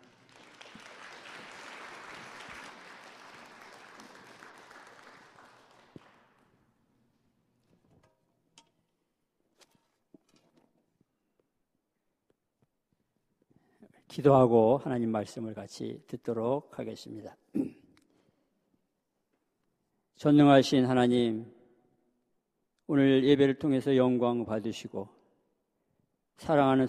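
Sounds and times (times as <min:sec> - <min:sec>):
audience applause welcoming pastor: 0:00.0 - 0:06.4
speech: 0:14.1 - 0:17.5, 0:20.2 - 0:21.6, 0:22.9 - 0:25.2, 0:26.4 - 0:26.8.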